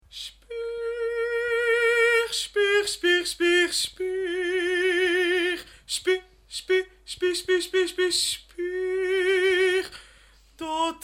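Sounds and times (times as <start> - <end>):
opera solo singing: 0.1 - 10.0, 10.6 - 11.0.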